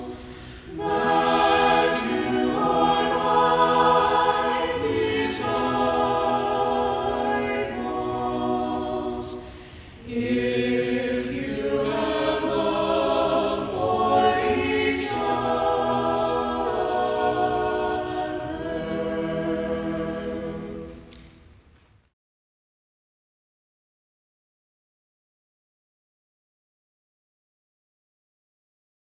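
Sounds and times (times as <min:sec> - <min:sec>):
choir singing: 0:00.0 - 0:21.1.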